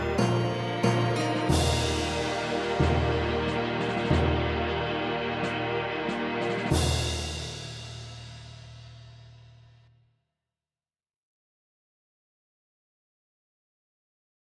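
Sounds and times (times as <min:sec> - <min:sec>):
orchestral music: 0:00.0 - 0:09.3.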